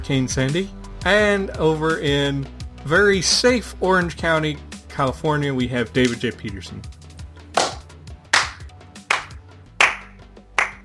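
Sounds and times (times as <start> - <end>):
speech: 0.0 - 7.0
slow hand clapping: 6.0 - 6.2, 7.5 - 10.8.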